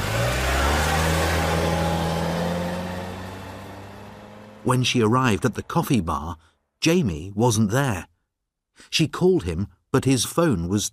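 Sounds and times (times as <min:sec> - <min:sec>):
car engine revving as the car accelerates away: 0:00.0 - 0:06.2
speech: 0:04.6 - 0:08.1, 0:08.8 - 0:10.9.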